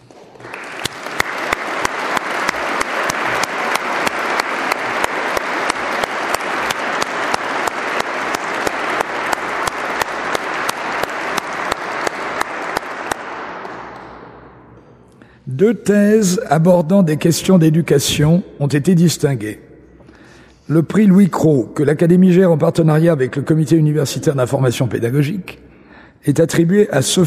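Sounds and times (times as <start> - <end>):
crowd applause for prize winners: 0.0 - 14.0
speech: 15.6 - 19.7, 20.7 - 25.6, 26.2 - 27.2.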